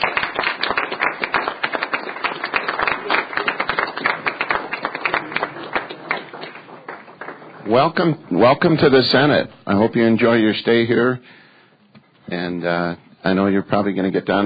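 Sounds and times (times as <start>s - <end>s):
round of applause in chamber: 0.0s - 8.2s
speech: 7.7s - 11.4s, 12.3s - 14.4s.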